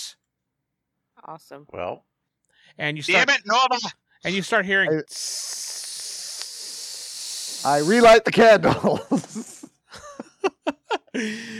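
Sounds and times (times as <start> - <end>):
speech: 1.2 - 2.1, 2.7 - 5.6, 7.6 - 9.6, 11.1 - 11.5
steady high-pitched hiss: 5.0 - 8.3
laughter: 8.4 - 11.5.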